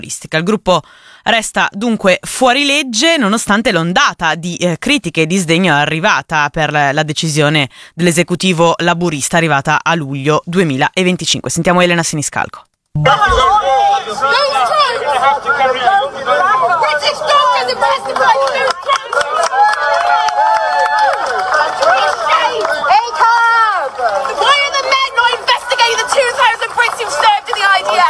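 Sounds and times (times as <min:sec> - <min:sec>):
speech: 0:00.0 - 0:19.8
protest crowd shouting and calling out: 0:13.0 - 0:28.0.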